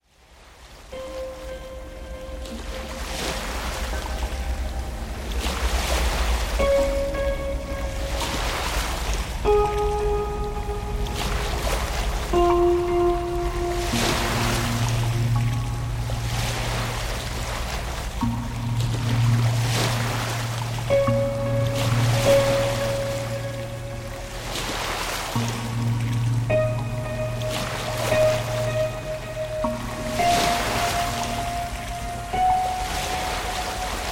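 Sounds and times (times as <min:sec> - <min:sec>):
ocean: 0:00.0 - 0:34.1.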